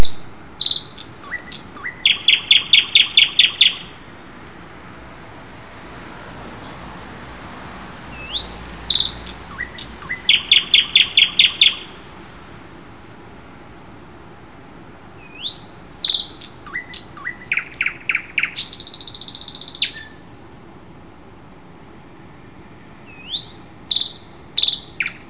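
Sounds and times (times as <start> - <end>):
common nightingale song: 0.0 - 5.0, 7.8 - 12.3, 13.3 - 25.2.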